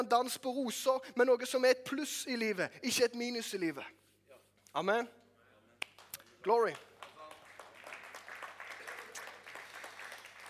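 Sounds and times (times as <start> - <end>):
speech: 0.0 - 4.0, 4.7 - 5.2, 6.4 - 6.9
enormous applause: 6.0 - 10.4.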